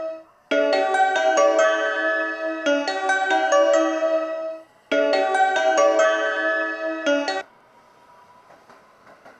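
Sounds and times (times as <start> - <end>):
pass-by at a station: 0.0 - 9.3.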